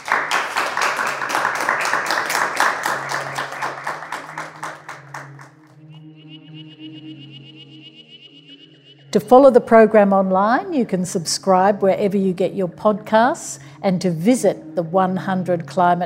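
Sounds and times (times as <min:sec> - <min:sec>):
round of applause: 0:00.0 - 0:05.7
speech: 0:09.2 - 0:16.0.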